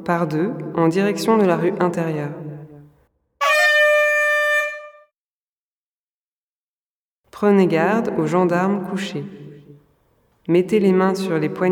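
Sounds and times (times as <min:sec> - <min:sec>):
speech: 0:00.0 - 0:02.4, 0:07.4 - 0:09.4, 0:10.5 - 0:11.6
horn-like start signal: 0:03.4 - 0:05.1.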